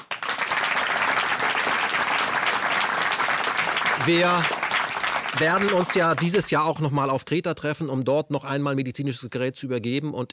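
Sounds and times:
audience applause: 0:00.0 - 0:06.6
speech: 0:04.0 - 0:04.6, 0:05.3 - 0:10.3.

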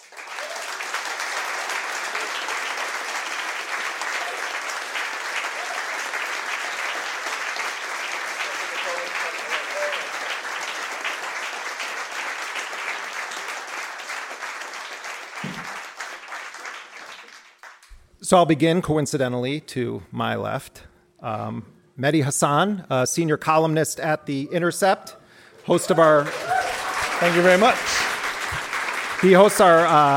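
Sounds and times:
audience applause welcoming a guest: 0:00.0 - 0:17.9, 0:25.6 - 0:30.1
speech: 0:18.3 - 0:26.5, 0:27.2 - 0:28.0, 0:29.2 - 0:30.1.

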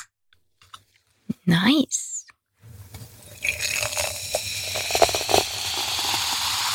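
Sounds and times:
speech: 0:01.5 - 0:02.1
drink can opening: 0:03.5 - 0:06.6.

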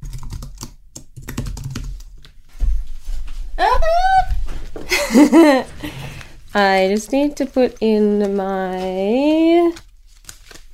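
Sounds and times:
typing bank and credit card details on a computer keyboard: 0:00.0 - 0:02.1
speech: 0:03.6 - 0:04.3, 0:04.9 - 0:06.0, 0:06.6 - 0:09.8
laughter: 0:04.9 - 0:05.9.

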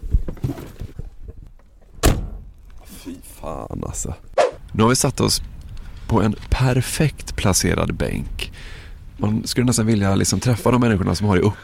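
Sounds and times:
door slamming shut: 0:02.0 - 0:02.5
speech: 0:03.1 - 0:05.5, 0:06.1 - 0:11.6.

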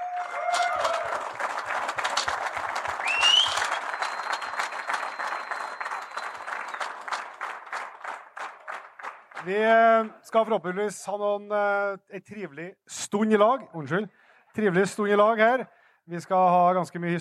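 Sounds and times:
applause: 0:00.0 - 0:10.2
speech: 0:09.4 - 0:17.1.

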